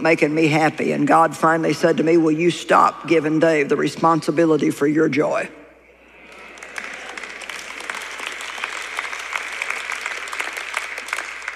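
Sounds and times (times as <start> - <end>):
speech: 0.0 - 5.6
half-hearted audience applause: 6.1 - 11.5.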